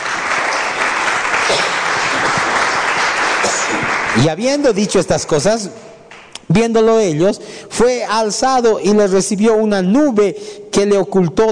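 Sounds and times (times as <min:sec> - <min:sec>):
audience applauding: 0:00.0 - 0:05.4
speech: 0:04.2 - 0:05.9, 0:06.5 - 0:11.5.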